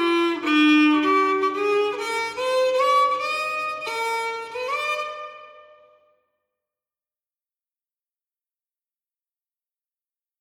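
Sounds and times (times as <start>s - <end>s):
fiddle tune: 0.0s - 6.1s.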